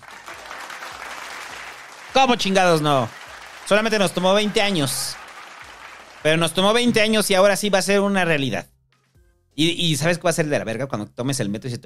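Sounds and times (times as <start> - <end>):
applause: 0.0 - 7.5
speech: 2.2 - 5.2, 6.2 - 8.7, 9.6 - 11.8.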